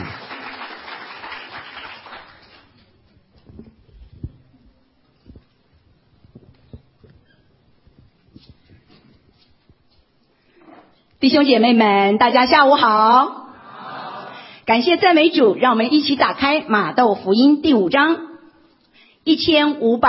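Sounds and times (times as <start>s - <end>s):
audience applause: 0.0s - 2.8s
scattered knocks and shuffling in a quiet hall: 2.6s - 11.2s
speech: 11.2s - 13.4s, 14.7s - 18.3s, 19.2s - 20.0s.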